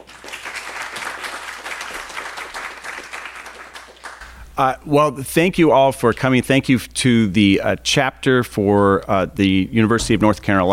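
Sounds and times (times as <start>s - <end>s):
audience applause: 0.0s - 4.2s
speech: 4.6s - 10.7s.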